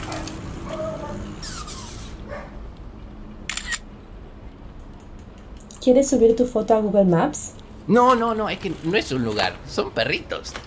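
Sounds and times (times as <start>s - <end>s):
low hum: 0.0s - 10.6s
camera shutter taking a photo: 3.5s - 3.9s
speech: 5.8s - 10.6s.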